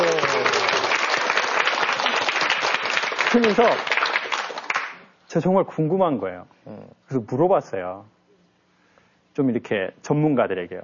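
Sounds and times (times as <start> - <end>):
audience applause: 0.0 - 5.0
speech: 3.3 - 3.9, 5.3 - 8.1, 9.4 - 10.8.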